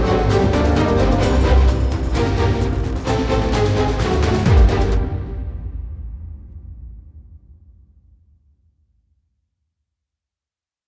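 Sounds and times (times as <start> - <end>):
background score: 0.0 - 6.4.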